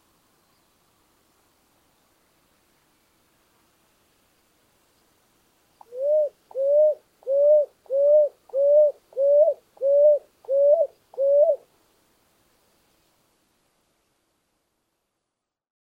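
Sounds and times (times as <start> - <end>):
grey-eyed ground dove: 5.8 - 11.7.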